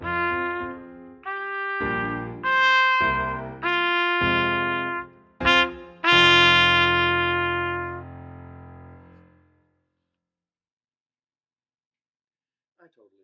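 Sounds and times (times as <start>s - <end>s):
baritone solo with accompaniment: 0.0s - 9.2s.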